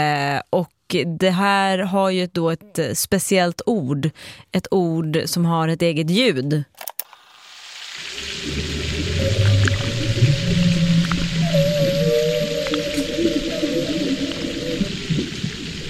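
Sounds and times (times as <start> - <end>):
speech: 0.0 - 6.9
frying bacon: 7.2 - 15.8
humpback whale song: 8.0 - 15.8.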